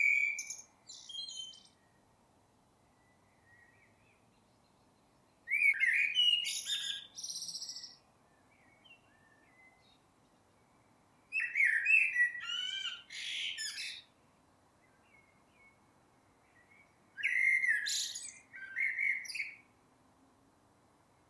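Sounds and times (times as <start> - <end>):
common blackbird song: 0.0 - 2.0, 2.8 - 14.1, 16.4 - 19.7.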